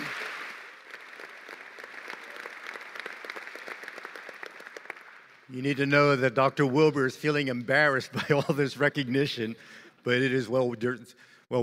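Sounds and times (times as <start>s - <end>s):
audience applause: 0.0s - 5.5s
speech: 5.5s - 11.6s.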